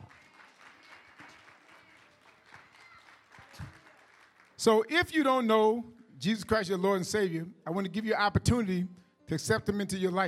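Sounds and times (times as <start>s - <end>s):
audience clapping: 0.0s - 4.9s
speech: 4.6s - 10.2s.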